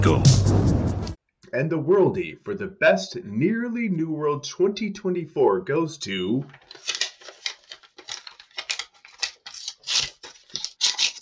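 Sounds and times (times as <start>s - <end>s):
speech: 0.0s - 0.6s, 1.5s - 6.9s
paper envelope being torn open: 6.5s - 11.1s.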